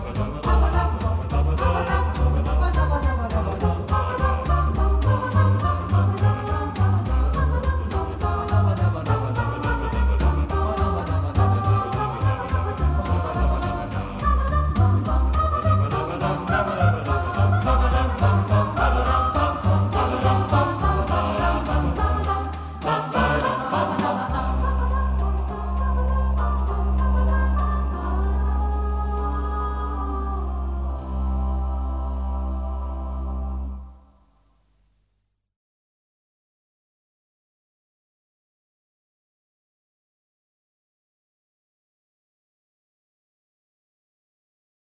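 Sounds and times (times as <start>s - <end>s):
fugue in C minor: 0.0s - 34.0s.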